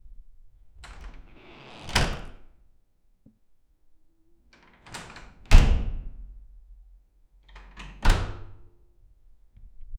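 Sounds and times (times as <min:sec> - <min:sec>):
door opening: 0:00.8 - 0:02.4.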